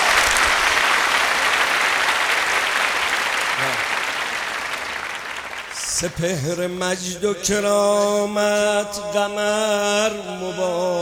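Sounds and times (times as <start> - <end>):
audience clapping at a festive celebration: 0.0 - 6.6
speech: 6.0 - 11.0.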